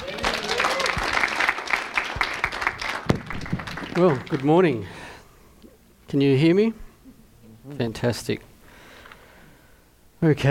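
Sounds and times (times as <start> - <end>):
audience applause: 0.0 - 4.8
speech: 4.0 - 5.0, 6.1 - 6.8, 7.7 - 8.5, 10.2 - 10.4.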